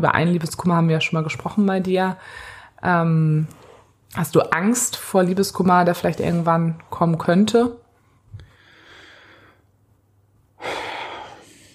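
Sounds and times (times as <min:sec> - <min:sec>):
speech: 0:00.0 - 0:07.8
heavy breathing: 0:08.4 - 0:09.7, 0:10.6 - 0:11.7.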